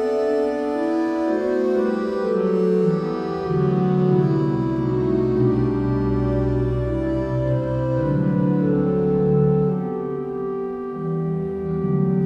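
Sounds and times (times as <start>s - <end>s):
physharmonica playing: 0.0s - 12.2s.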